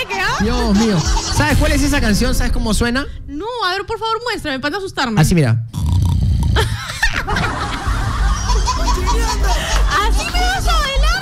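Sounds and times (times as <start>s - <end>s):
people laughing: 0.0s - 2.2s, 6.6s - 11.2s
speech: 0.4s - 5.6s, 6.6s - 6.8s, 9.0s - 11.0s
person imitating snoring: 5.7s - 6.8s.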